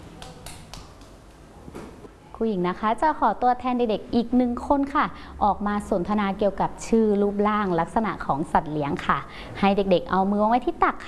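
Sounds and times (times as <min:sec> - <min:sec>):
children clapping in a classroom: 0:00.0 - 0:01.4
speech: 0:02.4 - 0:11.0.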